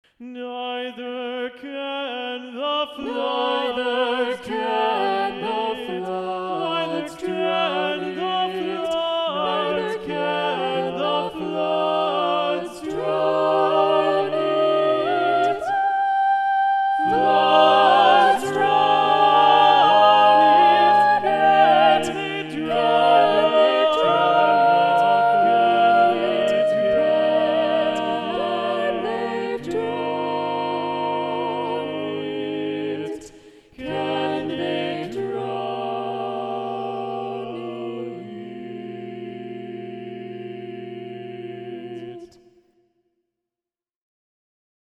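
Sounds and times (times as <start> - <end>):
SATB choir singing: 0.6 - 42.7.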